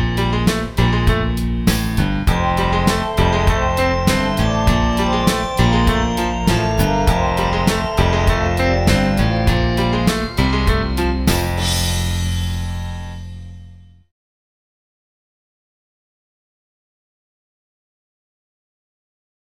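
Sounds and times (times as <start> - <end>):
karaoke backing track: 0.0 - 12.6.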